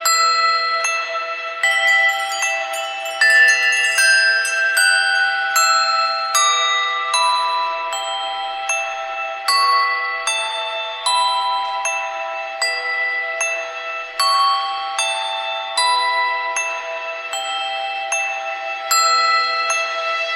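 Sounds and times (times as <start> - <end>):
bells ringing: 0.0 - 20.3.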